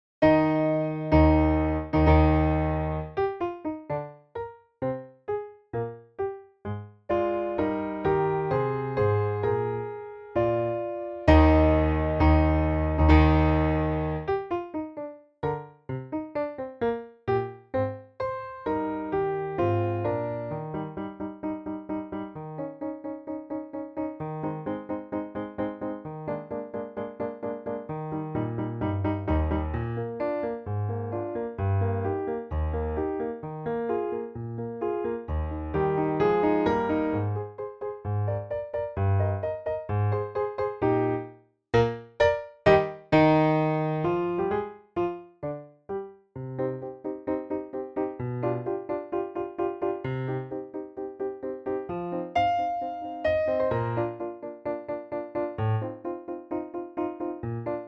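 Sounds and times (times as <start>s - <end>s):
allegro piano accompaniment: 0.2s - 57.8s.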